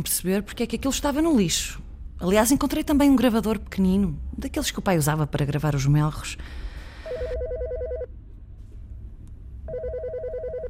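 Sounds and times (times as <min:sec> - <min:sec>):
speech: 0:00.0 - 0:07.4
telephone ringing: 0:07.1 - 0:08.1, 0:09.7 - 0:10.6.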